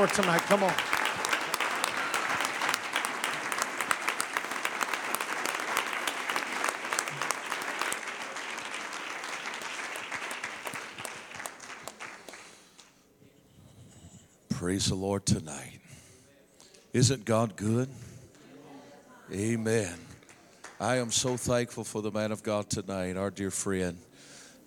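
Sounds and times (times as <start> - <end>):
speech: 0.0 - 0.9, 14.6 - 15.8, 16.9 - 18.1, 19.3 - 20.1, 20.8 - 24.1
crowd clapping and applauding: 0.0 - 13.0, 20.2 - 21.5.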